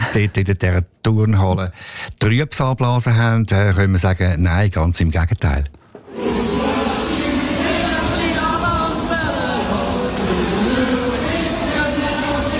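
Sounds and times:
speech: 0.1s - 6.4s
evacuated crowd singing in gym: 5.9s - 12.5s.

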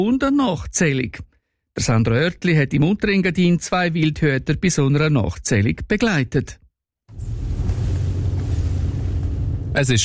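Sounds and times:
speech: 0.0s - 6.6s, 9.8s - 10.0s
car engine rumble at night in a forest above Scuol in the Lower Engadine: 7.1s - 10.0s.

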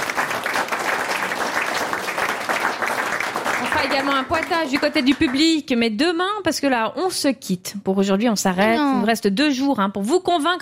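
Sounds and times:
audience applause: 0.0s - 5.6s
speech: 3.8s - 10.5s.

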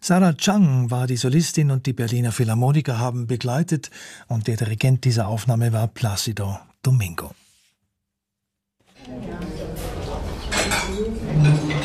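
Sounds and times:
speech: 0.0s - 7.4s
murmur of indistinct voices: 9.0s - 11.8s
restaurant kitchen dishes and cutlery clinking: 9.2s - 11.8s.

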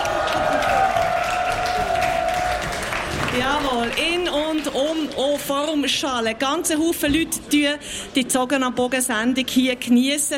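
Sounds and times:
crowd cheering and clapping: 0.0s - 5.2s
speech: 3.4s - 10.3s.

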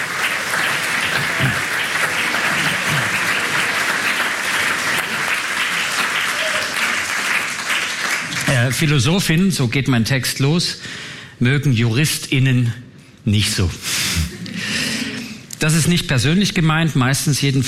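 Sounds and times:
audience applause: 0.0s - 8.8s
speech: 8.7s - 14.0s, 15.6s - 17.6s.

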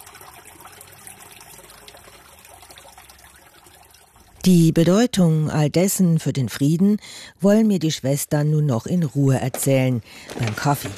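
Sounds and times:
water trickling and splashing in a fountain: 0.0s - 5.8s
speech: 4.4s - 10.9s.

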